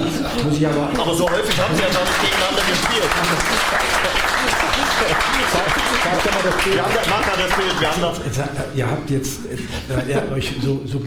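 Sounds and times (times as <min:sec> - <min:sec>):
laughter: 0:00.0 - 0:10.8
speech: 0:00.4 - 0:11.0
audience clapping: 0:00.7 - 0:08.2.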